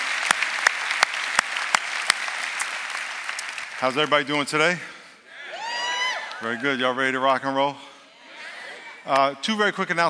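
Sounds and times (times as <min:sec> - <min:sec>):
audience applause: 0:00.0 - 0:04.8
speech: 0:03.8 - 0:04.9, 0:06.4 - 0:07.8, 0:09.0 - 0:10.0.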